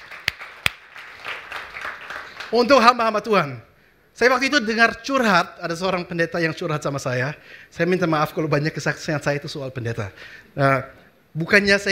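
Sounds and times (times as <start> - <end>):
audience applause: 0.0 - 2.6
speech: 2.5 - 11.8.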